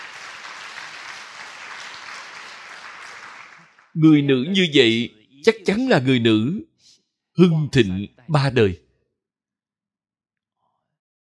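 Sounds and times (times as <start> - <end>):
audience applause at a talk: 0.0 - 5.0
speech: 4.0 - 6.7, 7.4 - 8.8.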